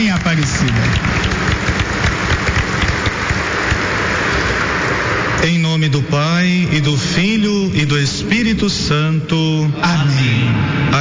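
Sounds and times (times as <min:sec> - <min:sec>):
large crowd applauding: 0:00.0 - 0:04.6
speech: 0:00.1 - 0:01.2, 0:05.4 - 0:11.0.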